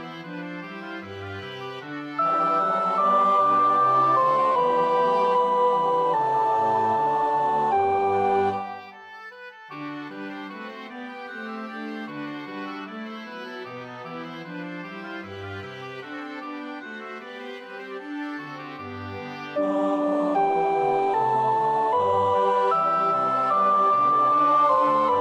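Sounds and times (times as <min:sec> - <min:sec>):
soprano practising a choir part: 0:02.2 - 0:08.8, 0:19.6 - 0:25.2.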